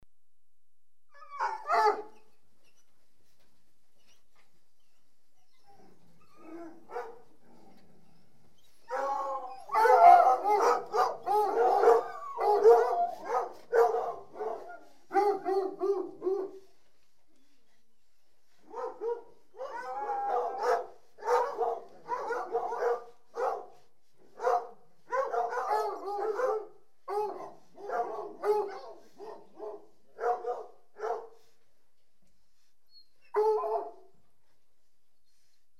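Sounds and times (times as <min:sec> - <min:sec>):
dog barking: 0:01.4 - 0:02.1, 0:06.9 - 0:07.2, 0:08.9 - 0:16.6, 0:18.7 - 0:23.8, 0:24.4 - 0:31.4, 0:33.4 - 0:34.1.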